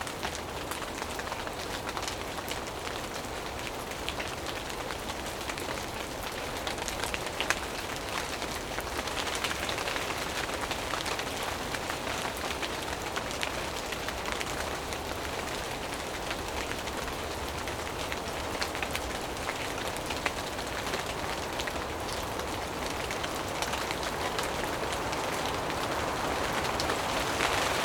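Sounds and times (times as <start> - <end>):
rain on leaves in a rain forest: 0.0 - 27.8
wind in trees: 2.8 - 27.8.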